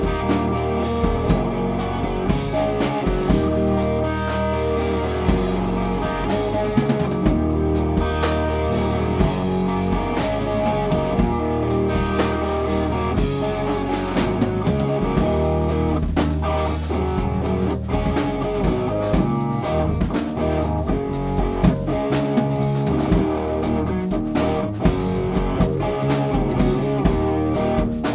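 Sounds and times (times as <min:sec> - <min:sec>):
noisy three chords: 0:00.0 - 0:28.1.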